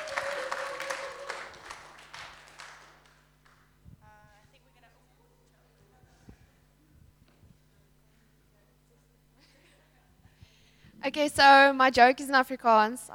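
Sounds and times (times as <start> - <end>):
audience applause: 0.0 - 3.7
speech: 11.1 - 13.1.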